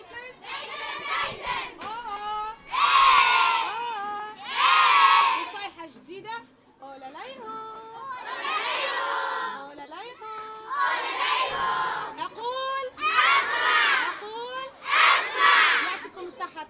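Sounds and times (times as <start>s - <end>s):
scouts shouting their scout cheer: 0.4s - 1.9s, 2.6s - 3.8s, 4.4s - 5.5s, 8.1s - 9.6s, 10.7s - 12.2s, 13.0s - 14.2s, 14.8s - 16.1s.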